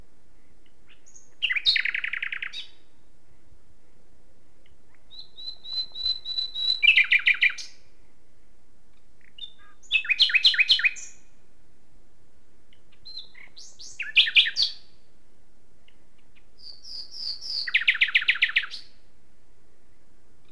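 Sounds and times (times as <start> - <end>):
common nightingale song: 0.3 - 4.0, 4.6 - 8.0, 8.9 - 11.4, 12.7 - 15.1, 15.8 - 19.1.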